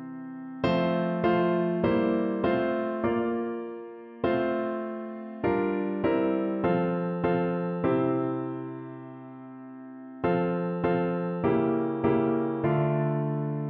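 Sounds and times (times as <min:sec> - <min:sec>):
piano piece: 0:00.0 - 0:13.6.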